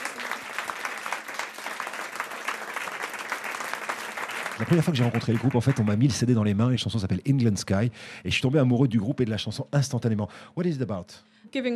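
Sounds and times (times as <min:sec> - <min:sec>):
audience applause: 0:00.0 - 0:06.4
speech: 0:04.6 - 0:11.7.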